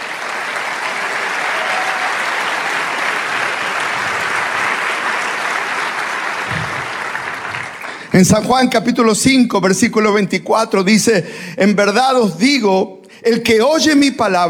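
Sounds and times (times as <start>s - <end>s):
audience applause: 0.0s - 8.4s
speech: 8.2s - 14.4s.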